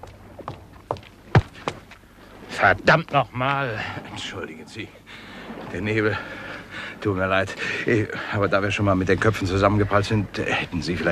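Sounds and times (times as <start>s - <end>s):
rapid approaching footsteps: 0.0s - 2.1s
speech: 2.6s - 6.4s, 7.0s - 11.1s.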